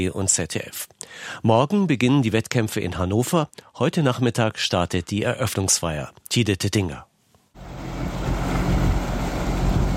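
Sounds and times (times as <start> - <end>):
speech: 0.0 - 7.1
broadband water and wind-like noise: 7.6 - 9.9
tugboats towing a floating stage across a lake for an opening ceremony: 7.6 - 9.9.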